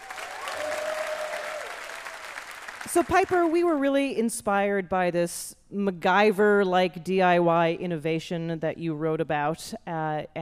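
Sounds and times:
audience applause for a guest on a game show: 0:00.0 - 0:03.4
speech: 0:02.9 - 0:10.3.

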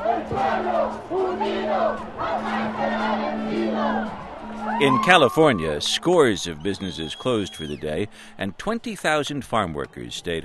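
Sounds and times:
protest crowd marching and chanting: 0:00.0 - 0:08.1
speech: 0:00.3 - 0:10.4.

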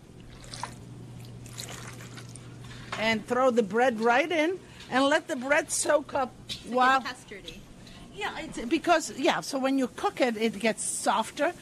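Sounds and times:
milk pouring into an egg mixture for soaking bread: 0:00.2 - 0:02.6
speech: 0:03.0 - 0:07.6, 0:08.2 - 0:11.5.

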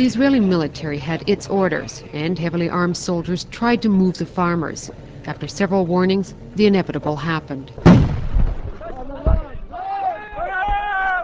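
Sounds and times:
speech: 0:00.0 - 0:08.0
tear gas launchers firing: 0:07.8 - 0:08.8
crowd shouting and wailing: 0:08.8 - 0:11.2.

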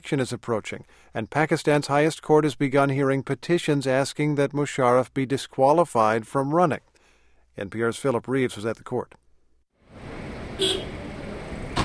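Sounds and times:
speech: 0:00.0 - 0:06.9, 0:07.6 - 0:09.2, 0:10.6 - 0:11.0
sleek new cars pulling up: 0:09.9 - 0:11.8.

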